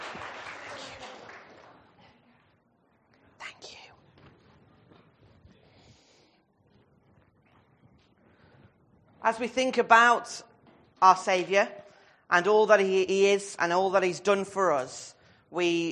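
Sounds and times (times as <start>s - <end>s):
short soft round of applause: 0.0s - 2.1s
speech: 9.2s - 15.9s.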